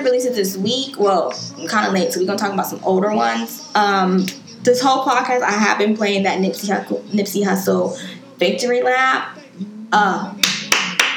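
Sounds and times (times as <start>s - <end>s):
speech: 0.0s - 10.5s
hand clapping: 10.4s - 11.1s.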